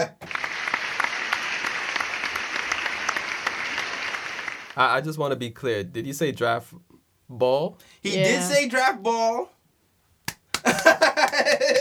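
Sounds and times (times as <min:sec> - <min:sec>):
hand clapping: 0:00.0 - 0:04.6, 0:10.2 - 0:11.7
speech: 0:04.8 - 0:09.6
laughter: 0:08.1 - 0:08.6, 0:10.6 - 0:11.7.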